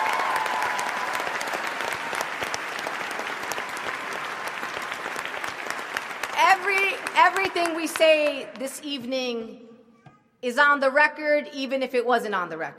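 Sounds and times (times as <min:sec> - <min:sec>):
audience applause: 0:00.0 - 0:08.4
speech: 0:07.4 - 0:09.7, 0:10.4 - 0:12.7.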